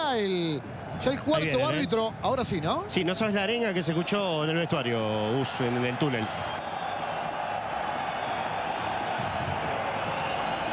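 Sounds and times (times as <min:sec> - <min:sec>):
speech: 0:00.1 - 0:06.6
stadium crowd cheering: 0:00.2 - 0:10.7
large stadium crowd applauding: 0:03.2 - 0:10.7
stadium crowd whistling: 0:08.0 - 0:08.7, 0:09.3 - 0:10.7.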